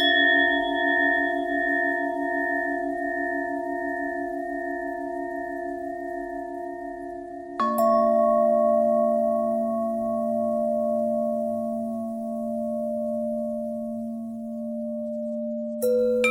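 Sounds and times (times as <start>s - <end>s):
bell with bent and twisted pitch: 0.0s - 16.2s.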